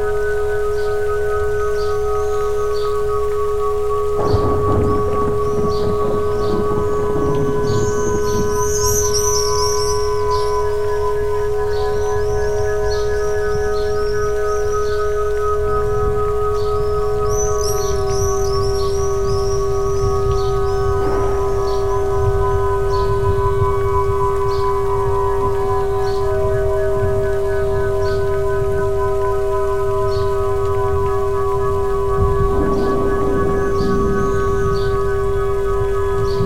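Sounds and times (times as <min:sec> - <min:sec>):
low rumble of rain and river: 0:00.0 - 0:36.4
sustained ringing Solfeggio frequency tone: 0:00.0 - 0:36.4
birds chirping: 0:03.8 - 0:36.4.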